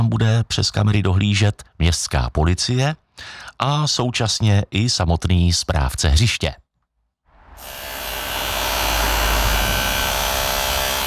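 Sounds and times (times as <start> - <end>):
speech: 0.0 - 6.6
power drill running: 7.6 - 11.0.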